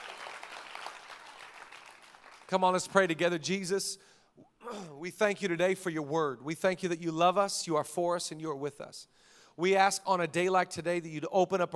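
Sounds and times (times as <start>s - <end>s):
audience clapping: 0.0s - 3.2s
speech: 2.5s - 11.7s.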